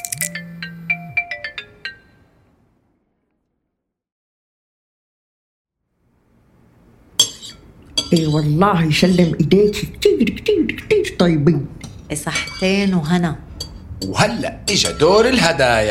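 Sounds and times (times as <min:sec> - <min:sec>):
phone ringtone for an incoming call: 0:00.0 - 0:02.3
speech: 0:08.1 - 0:13.4, 0:14.0 - 0:15.8.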